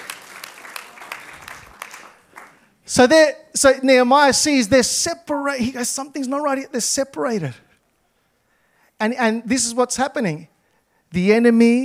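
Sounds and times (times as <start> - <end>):
audience clapping: 0.0 - 2.8
speech: 2.9 - 7.6, 9.0 - 11.8.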